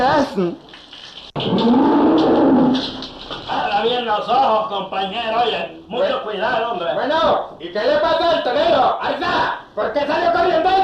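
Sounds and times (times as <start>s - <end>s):
speech: 0.2s - 0.8s, 1.4s - 3.1s, 3.8s - 10.8s
bull bellowing: 1.4s - 3.1s.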